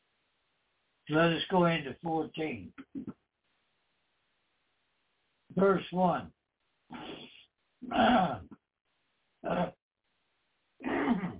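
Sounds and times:
speech: 1.1 - 3.2, 5.6 - 7.2, 7.8 - 8.5
person clearing throat during a Bible reading: 2.8 - 3.1, 6.9 - 8.6, 9.4 - 9.8, 10.8 - 11.3.

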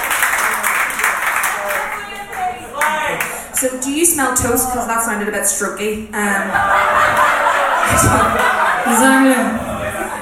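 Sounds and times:
audience applause: 0.0 - 3.6, 6.6 - 9.1
speech: 3.6 - 9.7
laughter: 6.2 - 10.2.

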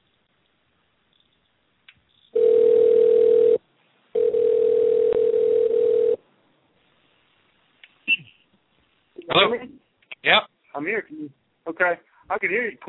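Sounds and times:
telephone dial tone: 2.4 - 3.6, 4.2 - 6.2
speech: 10.3 - 12.8.

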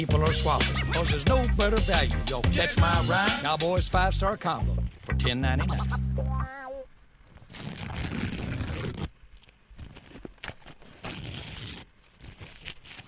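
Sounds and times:
speech: 0.0 - 6.3
paper being torn to shreds: 7.3 - 13.0.

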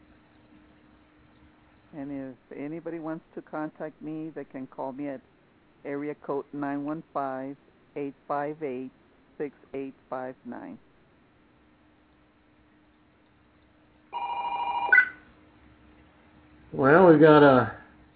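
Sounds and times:
speech: 1.9 - 10.9, 16.7 - 17.8
telephone ringing with an incoming call: 14.2 - 15.3.

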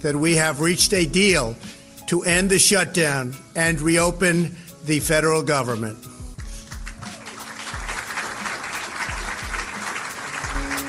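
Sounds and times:
speech: 0.0 - 6.1
audience applause: 6.8 - 10.8.

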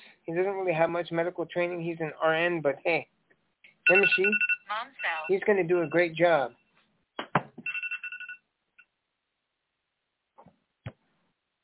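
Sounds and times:
speech: 0.3 - 3.2, 3.9 - 6.6
phone ringing: 3.9 - 6.1, 7.6 - 8.4.

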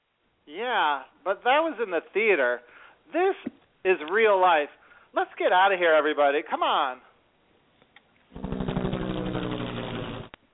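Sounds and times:
speech: 0.5 - 7.1
helicopter flying overhead: 8.4 - 10.3.

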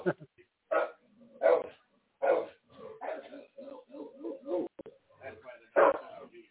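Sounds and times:
dog barking: 0.7 - 4.7, 5.8 - 6.2.

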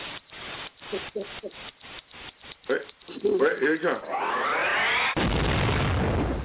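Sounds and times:
speech: 0.9 - 1.9, 2.7 - 4.6
bomb explosion: 4.6 - 6.4.

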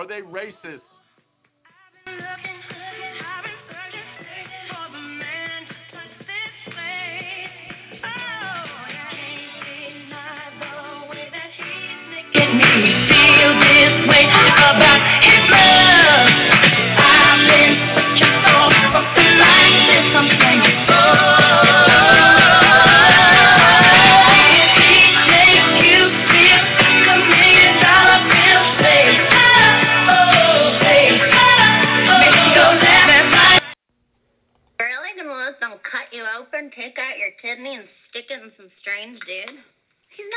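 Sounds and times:
speech: 0.0 - 1.0
pop song with full band and melodic singing voice: 0.0 - 33.8.

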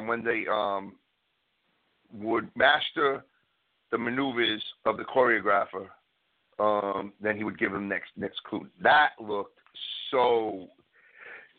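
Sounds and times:
speech: 0.1 - 1.0, 2.1 - 3.3, 3.9 - 6.0, 6.6 - 10.8
breathy intake of air: 11.0 - 11.5.

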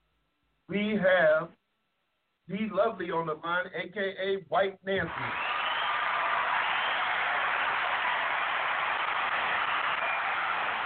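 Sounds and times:
speech: 0.7 - 1.6, 2.5 - 5.5
crowd cheering sound effect: 5.0 - 10.8.

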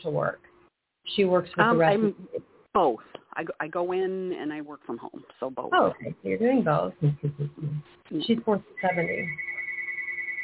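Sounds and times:
speech: 0.0 - 9.5
phone ringing: 8.8 - 10.4.

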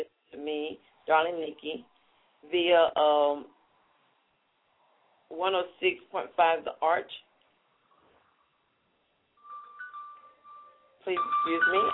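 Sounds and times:
speech: 1.1 - 3.6, 5.3 - 7.3, 11.0 - 11.9
mobile phone ringing: 9.4 - 11.9.

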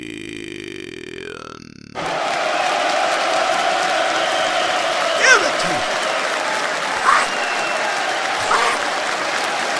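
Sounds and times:
audience clapping: 2.0 - 9.7.

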